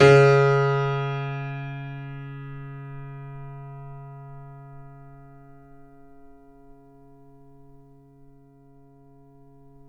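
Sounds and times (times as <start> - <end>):
grand piano note C sharp 2 played fortissimo: 0.0 - 4.6.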